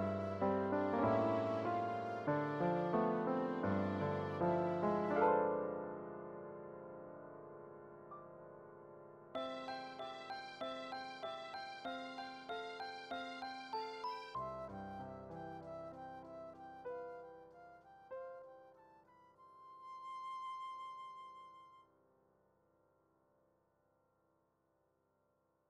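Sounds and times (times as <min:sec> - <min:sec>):
strings: 0:00.0 - 0:05.7, 0:09.4 - 0:16.2.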